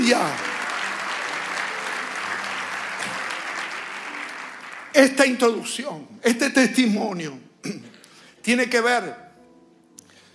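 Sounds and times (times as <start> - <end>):
audience applauding: 0.0 - 5.8
speech: 0.1 - 0.5, 5.0 - 9.2.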